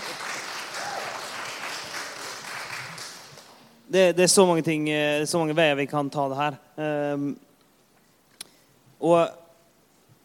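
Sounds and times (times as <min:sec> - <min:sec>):
audience applause: 0:00.0 - 0:03.7
speech: 0:03.9 - 0:07.5, 0:09.0 - 0:09.4.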